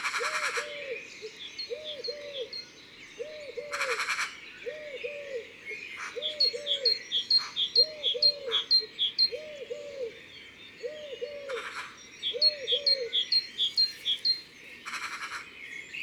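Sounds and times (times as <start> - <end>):
Eurasian collared dove cooing: 0.0 - 1.0, 1.7 - 2.6, 3.2 - 10.2, 10.8 - 14.2.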